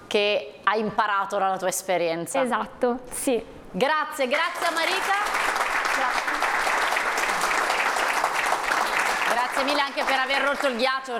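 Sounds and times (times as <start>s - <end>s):
speech: 0.1s - 6.5s, 9.6s - 11.1s
audience applause: 4.6s - 10.9s.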